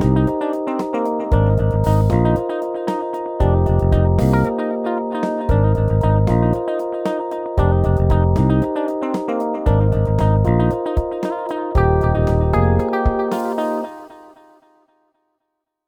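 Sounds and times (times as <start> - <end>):
Rhodes electric piano and Stratocaster electric guitar: 0.0 - 14.5.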